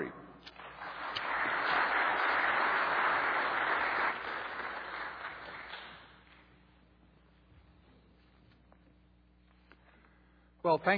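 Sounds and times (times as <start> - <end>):
audience applause welcoming a speaker to the stage: 0.6 - 6.2.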